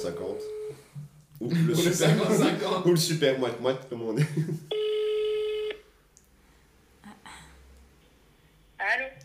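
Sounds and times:
speech: 0:00.0 - 0:04.8
outgoing phone call ringback tone: 0:00.3 - 0:00.8, 0:04.7 - 0:05.8
laughter: 0:01.4 - 0:02.9, 0:04.1 - 0:04.7.

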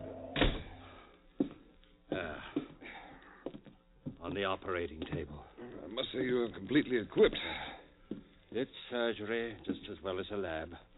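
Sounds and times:
door being kicked shut: 0:00.0 - 0:00.8
speech: 0:04.3 - 0:07.7, 0:08.5 - 0:10.9.

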